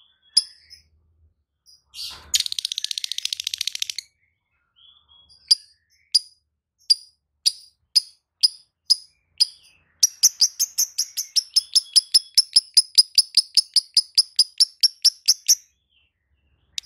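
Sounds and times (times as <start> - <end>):
lovebird song with buzzy chattering trill: 2.4 - 4.0, 5.5 - 15.6.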